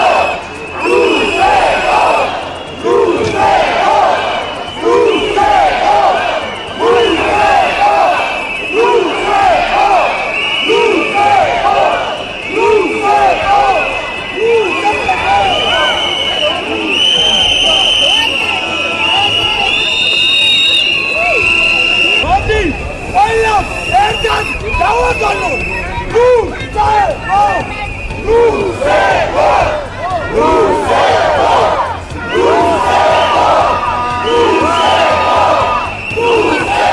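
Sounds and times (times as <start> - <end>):
large crowd chanting at a protest outside parliament in Georgia: 0.0 - 19.8, 28.3 - 36.9
crowd noise: 0.0 - 36.9.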